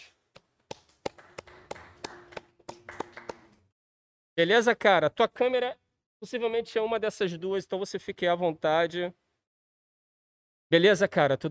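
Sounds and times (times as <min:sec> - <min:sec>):
round of applause: 0:00.7 - 0:03.7
speech: 0:04.4 - 0:09.2, 0:10.7 - 0:11.4.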